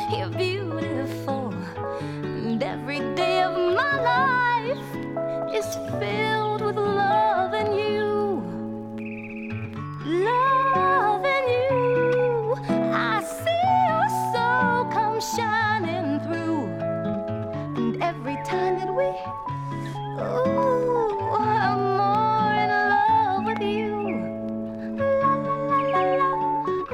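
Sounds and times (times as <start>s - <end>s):
music: 0.0s - 26.9s
birds: 9.0s - 10.1s.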